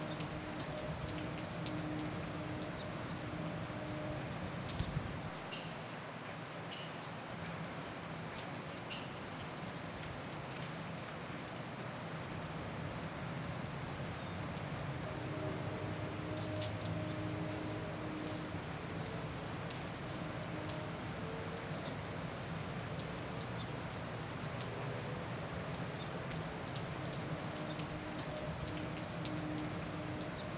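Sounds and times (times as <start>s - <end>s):
rain on a college campus: 0.0s - 30.5s.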